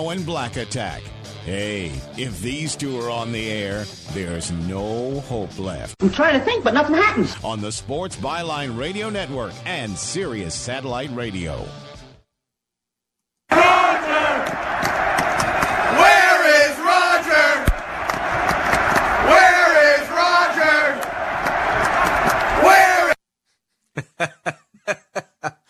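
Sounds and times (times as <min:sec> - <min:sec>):
speech: 0:00.0 - 0:11.8
football crowd chanting at a stadium: 0:13.5 - 0:23.2
laughter: 0:24.0 - 0:25.6.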